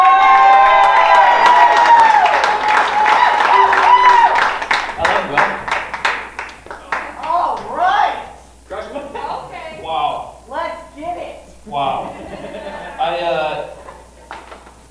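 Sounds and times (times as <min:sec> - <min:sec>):
excited shouts and voices: 0:00.0 - 0:05.7, 0:06.8 - 0:12.2
crowd cheering and whooping: 0:00.0 - 0:06.4
crowd applauding: 0:00.0 - 0:08.1
laughter: 0:00.7 - 0:05.8, 0:11.6 - 0:14.6.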